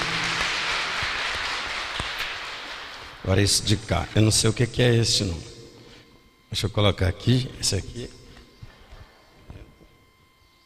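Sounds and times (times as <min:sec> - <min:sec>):
group of people applauding: 0:00.0 - 0:03.3
speech: 0:03.2 - 0:05.5, 0:06.5 - 0:08.2.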